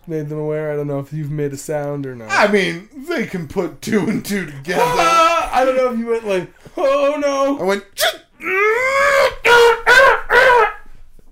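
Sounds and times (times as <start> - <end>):
speech: 0.0 - 9.8
voice imitating a little sob: 2.3 - 2.8, 4.6 - 5.6, 8.0 - 10.8.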